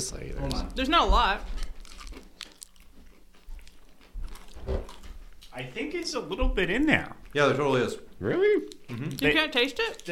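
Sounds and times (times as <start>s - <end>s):
speech: 0.0s - 1.6s, 5.6s - 10.1s
biting and chewing a Reese's Take 5 candy bar: 1.4s - 5.6s, 8.6s - 10.1s.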